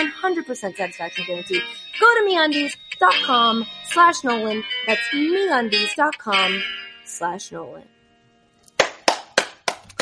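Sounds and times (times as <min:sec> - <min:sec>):
speech: 0:00.0 - 0:07.9
hand claps: 0:08.7 - 0:10.0.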